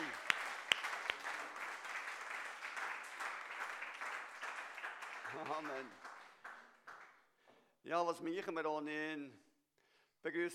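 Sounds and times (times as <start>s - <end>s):
audience applause: 0.0s - 7.2s
speech: 5.3s - 6.1s, 7.8s - 9.4s, 10.2s - 10.5s.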